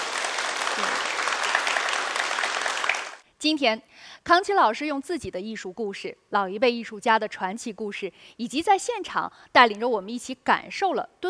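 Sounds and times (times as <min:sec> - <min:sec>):
warm applause: 0:00.0 - 0:03.2
speech: 0:00.8 - 0:01.0, 0:03.4 - 0:11.2.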